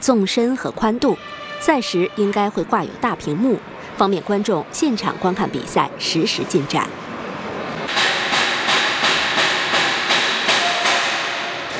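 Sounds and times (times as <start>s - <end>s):
speech: 0.0s - 7.1s
loud hammering at a construction site: 7.9s - 11.7s.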